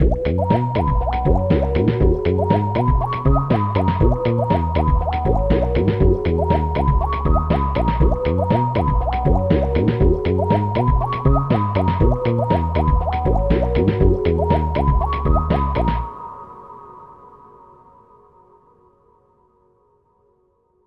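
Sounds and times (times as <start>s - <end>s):
water wave house music: 0.0s - 16.1s.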